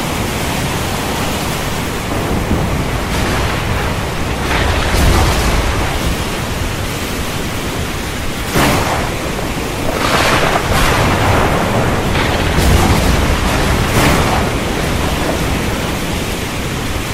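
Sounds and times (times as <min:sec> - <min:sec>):
heavy storm at sea: 0:00.0 - 0:17.1.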